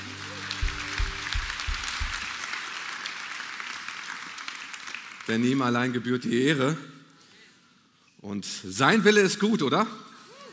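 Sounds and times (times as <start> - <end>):
low sustained musical tones: 0.0 - 2.3
audience applause: 0.0 - 5.5
deep thumps: 0.6 - 2.2
speech: 5.3 - 6.9, 8.2 - 10.1.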